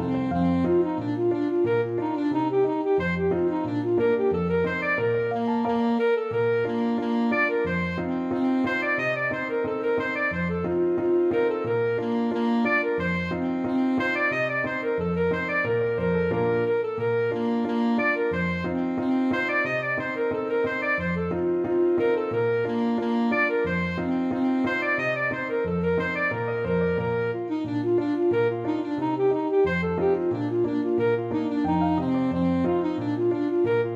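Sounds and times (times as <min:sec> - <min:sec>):
alto saxophone playing a hornpipe: 0:00.0 - 0:33.9.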